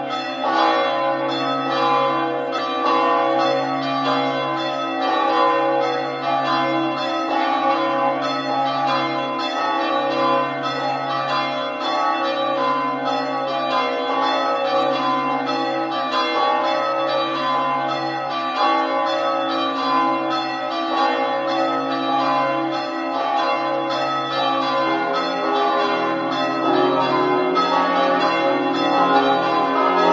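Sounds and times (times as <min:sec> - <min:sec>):
bells ringing: 0:00.0 - 0:30.1.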